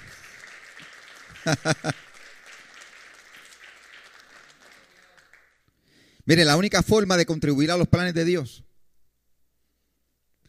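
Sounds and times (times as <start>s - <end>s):
audience applause: 0.0s - 5.7s
laughter: 1.1s - 2.8s
speech: 1.4s - 2.0s, 6.3s - 8.7s.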